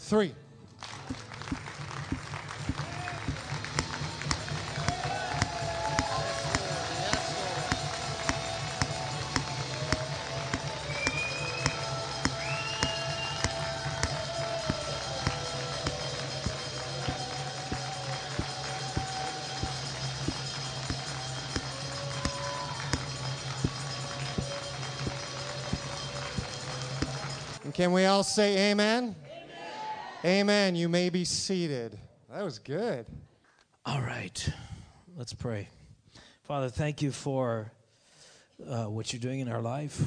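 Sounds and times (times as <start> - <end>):
speech: 0.1 - 0.4, 27.8 - 29.2, 30.2 - 33.2, 33.8 - 34.6, 35.2 - 35.8, 36.5 - 37.8, 38.6 - 40.0
audience clapping together: 0.8 - 28.2.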